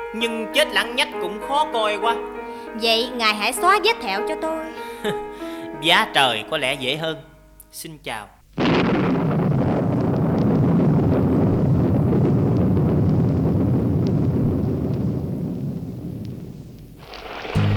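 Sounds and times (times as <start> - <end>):
speech: 0.1 - 8.8
heavy rain storm: 8.6 - 17.7.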